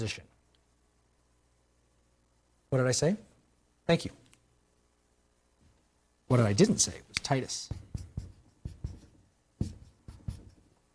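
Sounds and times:
speech: 0:00.0 - 0:00.3, 0:02.7 - 0:03.3, 0:03.9 - 0:04.2, 0:06.3 - 0:07.8
writing on a board during a scripture lecture: 0:07.6 - 0:10.7.

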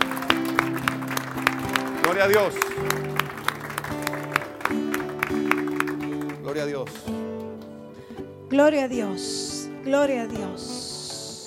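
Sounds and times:
audience clapping: 0:00.0 - 0:08.3
sustained keyboard chords: 0:00.0 - 0:11.4
speech: 0:02.1 - 0:03.0, 0:06.5 - 0:07.4, 0:08.5 - 0:10.8.

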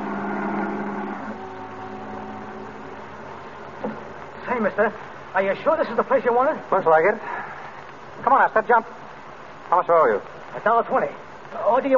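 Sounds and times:
taxi cab engine droning as it veers around a corner and pulls up: 0:00.0 - 0:04.4
speech: 0:03.8 - 0:07.4, 0:08.2 - 0:09.0, 0:09.7 - 0:11.9.

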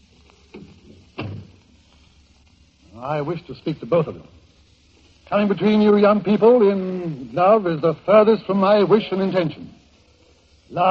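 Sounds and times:
door closing: 0:00.6 - 0:01.6
speech: 0:03.0 - 0:04.4, 0:05.3 - 0:09.8.

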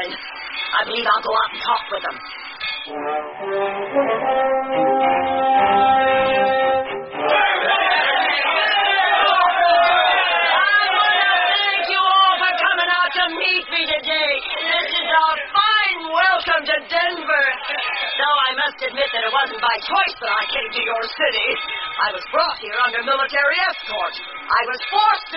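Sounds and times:
speech: 0:00.8 - 0:04.8, 0:18.8 - 0:25.3
horn-like blast: 0:02.4 - 0:09.1
large crowd cheering and shouting at a train station: 0:05.7 - 0:25.3.

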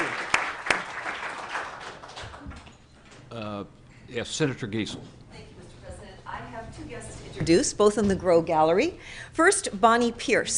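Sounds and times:
warm applause: 0:00.0 - 0:02.8
speech: 0:04.2 - 0:05.2, 0:06.8 - 0:10.5.

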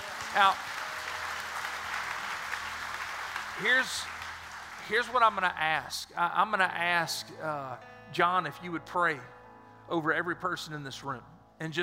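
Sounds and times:
audience applause: 0:00.0 - 0:05.6
speech: 0:00.4 - 0:00.8, 0:03.6 - 0:04.2, 0:04.9 - 0:11.8.

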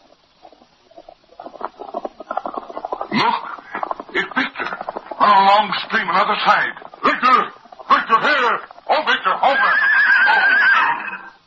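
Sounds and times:
hoofbeats of a single galloping horse: 0:00.0 - 0:11.3
speech: 0:03.2 - 0:03.4, 0:05.2 - 0:07.6, 0:08.2 - 0:10.7.

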